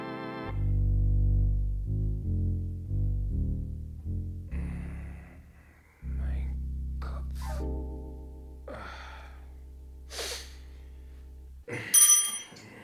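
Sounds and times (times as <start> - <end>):
low buzzing tone: 0.5 - 11.7
breathy gasps: 8.7 - 9.5, 10.1 - 10.9
sharp hiss: 10.1 - 10.5
service bell rung to summon a servant: 11.9 - 12.6.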